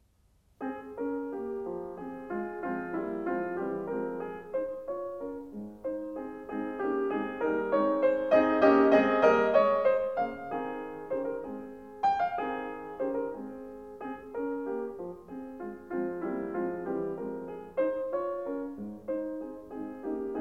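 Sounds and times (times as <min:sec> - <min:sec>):
piano sonata: 0:00.6 - 0:20.4.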